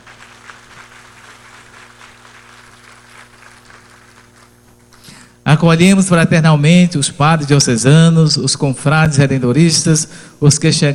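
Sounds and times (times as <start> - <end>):
audience applause: 0.0 - 4.8
speech: 5.5 - 10.9.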